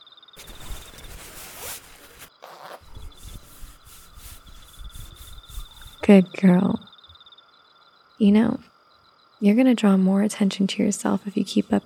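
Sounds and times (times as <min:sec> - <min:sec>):
pants zipper pulled down: 0:00.4 - 0:06.0
fabric rubbing: 0:00.4 - 0:06.2
speech: 0:06.1 - 0:06.9, 0:08.2 - 0:08.7, 0:09.4 - 0:11.8.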